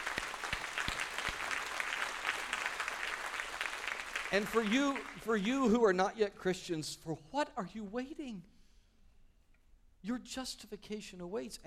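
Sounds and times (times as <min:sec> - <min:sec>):
audience applause: 0:00.0 - 0:05.5
speech: 0:04.3 - 0:08.5, 0:10.0 - 0:11.6.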